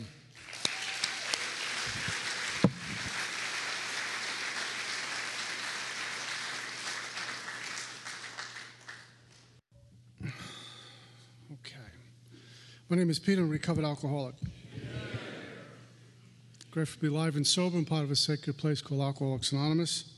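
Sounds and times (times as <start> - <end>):
audience applause: 0.4 - 9.2
speech: 12.9 - 14.6, 16.8 - 20.1.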